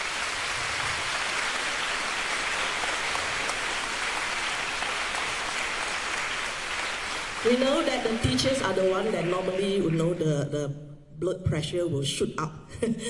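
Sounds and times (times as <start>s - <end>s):
audience applause: 0.0s - 10.3s
speech: 7.4s - 13.0s.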